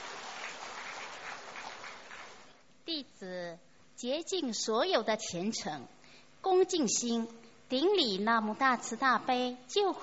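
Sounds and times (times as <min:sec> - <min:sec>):
audience clapping to welcome a speaker: 0:00.0 - 0:02.6
speech: 0:03.0 - 0:10.0.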